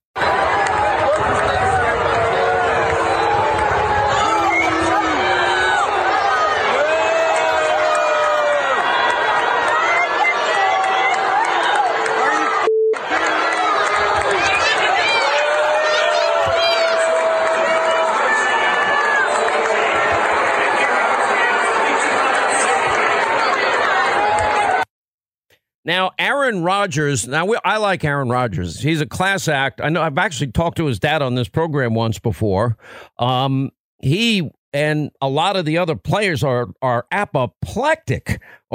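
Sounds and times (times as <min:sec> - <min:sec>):
stadium fans booing: 0:00.2 - 0:24.8
speech: 0:26.5 - 0:38.7.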